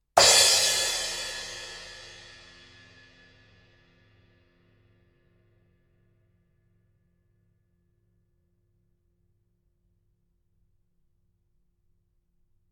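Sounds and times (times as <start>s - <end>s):
cymbal: 0.2s - 4.2s.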